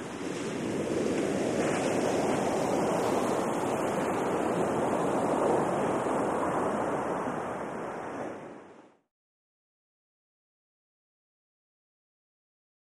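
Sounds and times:
medium size waves crashing with lots of foam hiss: 0.0s - 9.0s.

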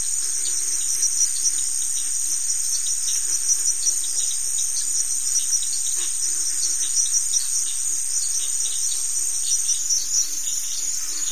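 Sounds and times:
cricket giving a continuous high buzzy trill: 0.0s - 11.3s.

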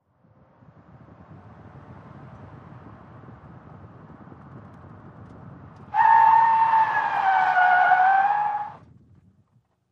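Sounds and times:
sedan skidding: 5.8s - 8.8s.

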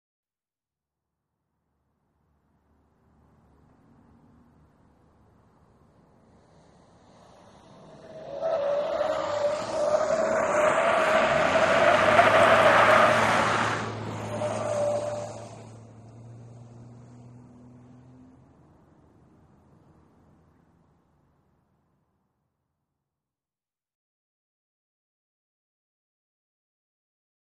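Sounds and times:
SUV truck accelerating around corners: 3.1s - 20.4s.

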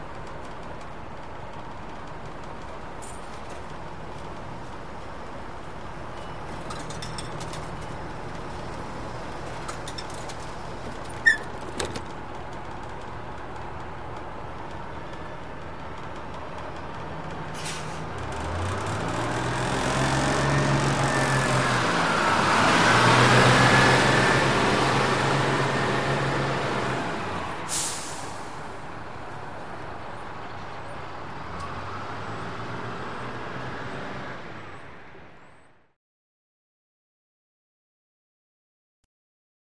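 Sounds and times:
bus pulling into a stop: 0.0s - 35.9s
bus doors closing and opening: 6.1s - 12.2s, 17.5s - 18.1s, 23.1s - 28.7s.

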